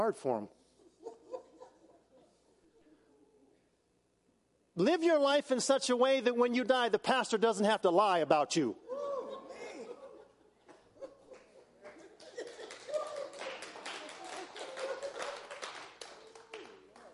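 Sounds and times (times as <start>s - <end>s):
speech: 0.0s - 0.6s, 4.8s - 9.1s
laughter: 0.9s - 2.7s, 9.0s - 16.4s
audience applauding: 11.4s - 17.1s.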